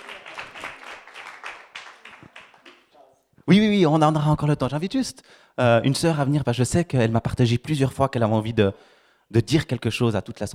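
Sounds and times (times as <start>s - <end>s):
audience applause: 0.0s - 2.9s
speech: 3.5s - 10.5s.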